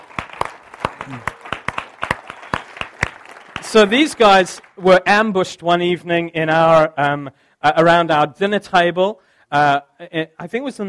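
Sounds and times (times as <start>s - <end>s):
audience applause: 0.0s - 5.0s
speech: 1.1s - 1.4s, 3.7s - 10.8s.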